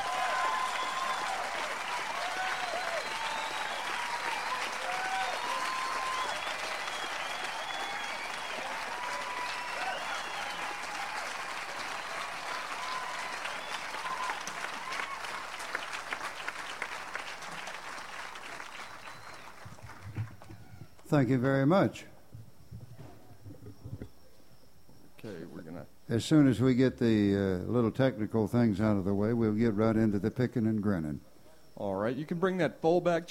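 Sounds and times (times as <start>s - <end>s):
concert audience applause welcoming two musicians: 0.0s - 21.1s
speech: 21.1s - 22.1s, 26.1s - 31.3s, 32.2s - 33.3s.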